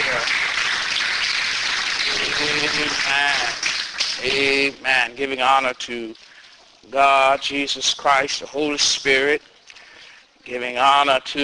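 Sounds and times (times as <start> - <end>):
audience clapping hands in praise: 0.0 - 4.6
speech: 2.7 - 3.6, 4.2 - 6.2, 6.8 - 9.5, 10.4 - 11.4.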